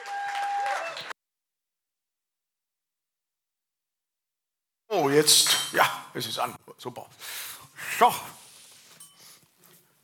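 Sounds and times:
audience applause as guest takes stage: 0.0s - 1.2s
speech: 5.1s - 8.4s.

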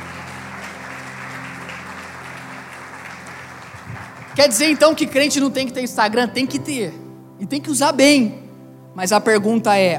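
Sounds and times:
crowd applause: 0.0s - 5.3s
speech: 4.4s - 8.4s, 9.0s - 9.9s.

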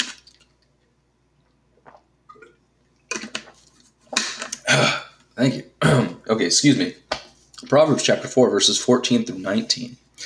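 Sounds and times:
person taking a sip of water: 0.2s - 5.2s
speech: 4.8s - 7.0s, 7.7s - 10.0s.

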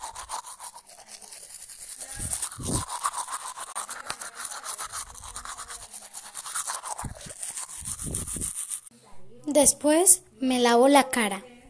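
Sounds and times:
toothbrush scrubbing teeth in the morning: 0.0s - 8.9s
speech: 9.6s - 11.5s.

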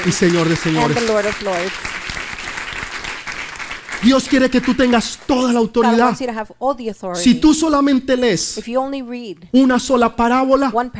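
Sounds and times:
speech: 0.0s - 2.0s, 4.0s - 10.9s
audience applause: 0.0s - 5.0s.

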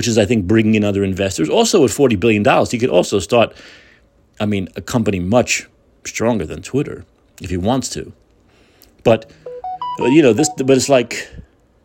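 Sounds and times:
speech: 0.0s - 3.8s, 4.4s - 8.2s, 9.0s - 9.4s, 10.0s - 11.4s
electronic beep: 9.4s - 11.0s.

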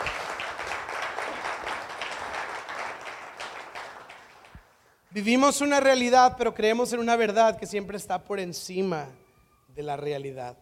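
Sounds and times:
crowd applauding: 0.0s - 4.6s
speech: 5.2s - 9.2s, 9.8s - 10.6s.

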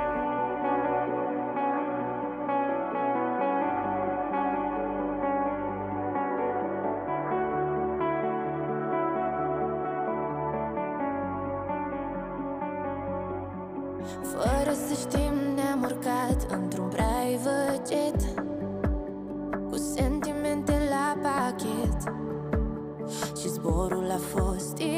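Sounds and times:
pop song single played on radio: 0.0s - 24.9s.

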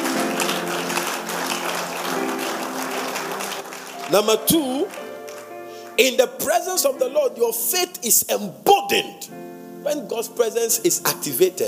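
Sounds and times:
audience clapping: 0.0s - 5.7s
speech: 4.1s - 5.0s, 6.0s - 11.6s.

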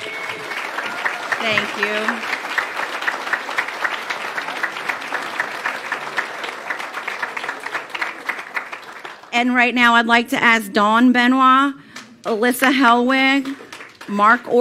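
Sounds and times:
audience applause: 0.0s - 9.4s, 13.4s - 14.2s
speech: 1.4s - 2.3s, 9.4s - 14.6s.

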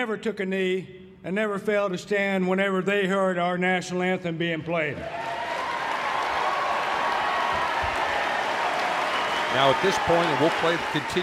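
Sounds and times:
speech: 0.0s - 5.4s, 9.5s - 11.2s
crowd cheering in a standing ovation: 5.0s - 11.2s.

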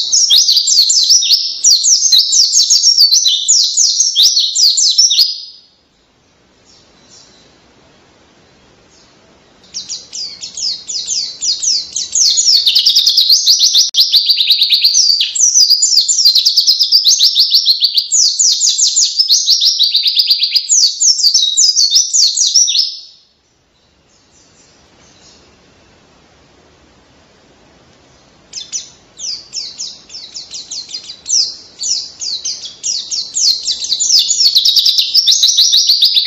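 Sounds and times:
white-eye (pleci) singing: 0.0s - 5.7s, 9.0s - 23.2s, 28.5s - 36.2s.

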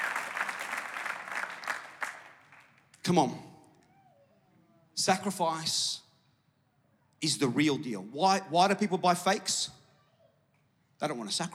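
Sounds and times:
church congregation applause: 0.0s - 3.0s
speech: 3.1s - 3.5s, 5.0s - 6.0s, 7.2s - 9.8s, 11.0s - 11.5s.

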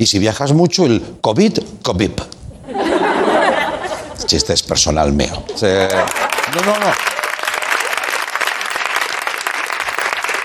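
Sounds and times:
speech: 0.0s - 2.8s, 4.3s - 7.1s
laughter: 2.6s - 10.4s
audience applause: 5.8s - 10.4s.

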